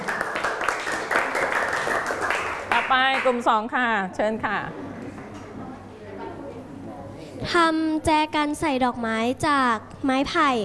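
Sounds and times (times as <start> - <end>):
classmates clapping for a group of students: 0.0 - 3.4
speech: 2.9 - 5.0, 7.4 - 10.6.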